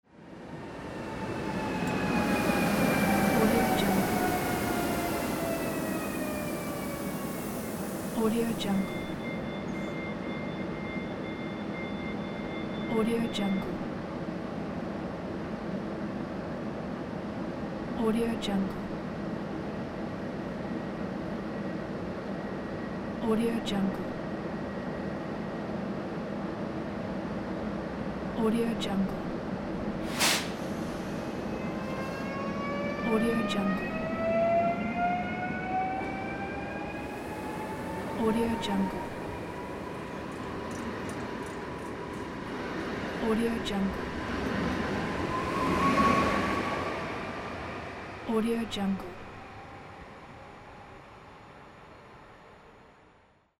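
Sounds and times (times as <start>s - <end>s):
train arriving and departing: 0.0s - 53.5s.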